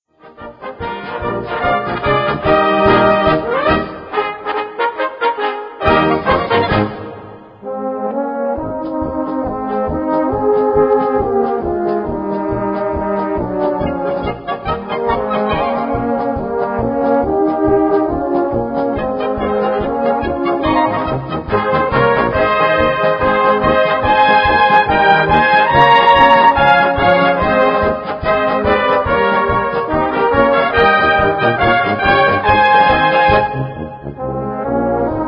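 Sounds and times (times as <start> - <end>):
polka music: 0.1 - 35.2.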